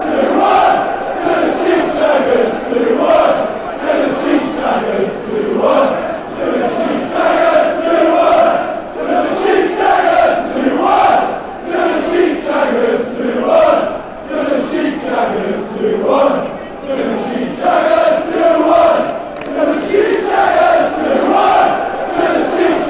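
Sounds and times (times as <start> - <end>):
fans chanting: 0.0 - 22.8.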